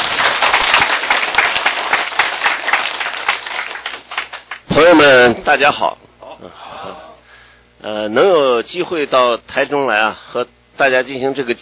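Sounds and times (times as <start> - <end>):
audience applause: 0.0 - 5.1
speech: 4.9 - 7.0, 7.8 - 11.6.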